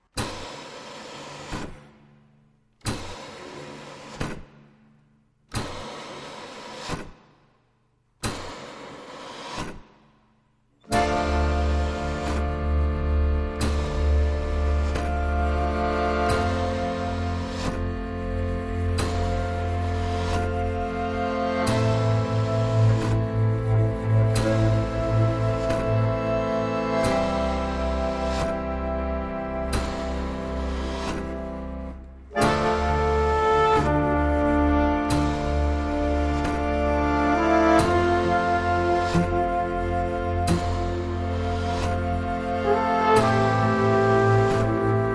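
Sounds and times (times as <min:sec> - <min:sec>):
music piece: 0:10.8 - 0:45.1.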